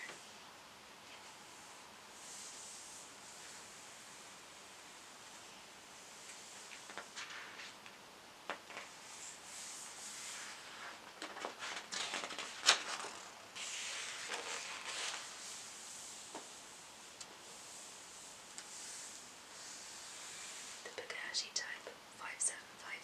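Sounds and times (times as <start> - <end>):
quiet hiss: 0.0 - 23.0
paper pages turning: 6.7 - 8.9, 10.2 - 15.4
soft speech: 20.9 - 23.0.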